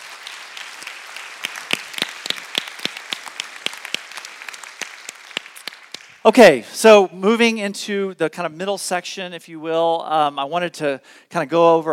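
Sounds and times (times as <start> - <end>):
audience applause: 0.0 - 6.2
speech: 6.2 - 11.9.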